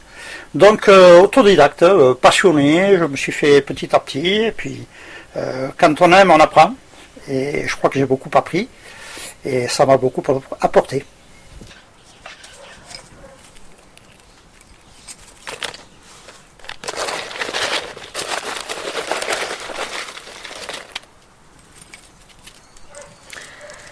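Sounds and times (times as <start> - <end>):
speech: 0.5 - 11.7
wheat and bread pigeon feed rustling and pouring: 15.2 - 22.5.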